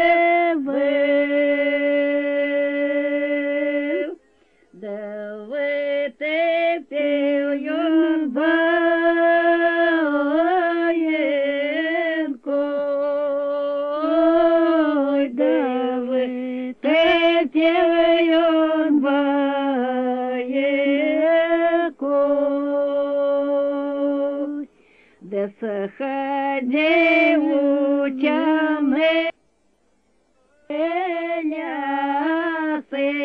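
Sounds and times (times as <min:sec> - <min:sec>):
harvest folk songs from Nevel district: 0:00.0 - 0:29.4, 0:30.5 - 0:33.2.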